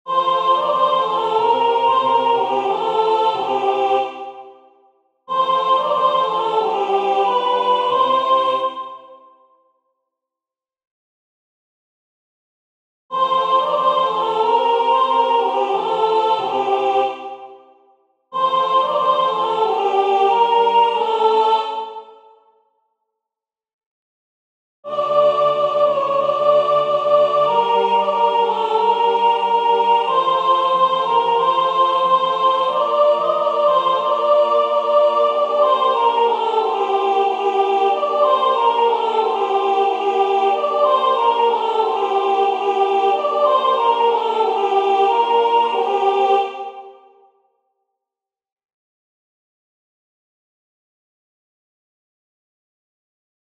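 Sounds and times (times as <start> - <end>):
soprano singing a folk song: 0.1 - 4.6, 5.3 - 9.1, 13.1 - 17.4, 18.4 - 22.2, 24.9 - 46.9.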